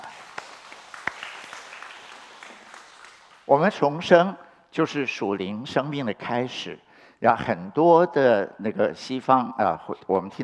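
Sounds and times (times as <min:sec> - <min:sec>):
crowd clapping: 0:00.0 - 0:03.7
speech: 0:03.5 - 0:10.4.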